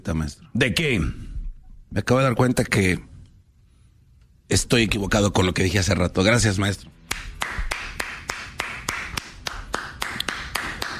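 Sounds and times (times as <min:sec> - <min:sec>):
speech: 0:00.1 - 0:01.2, 0:01.9 - 0:03.1, 0:04.5 - 0:07.6
hand clapping: 0:07.0 - 0:10.9.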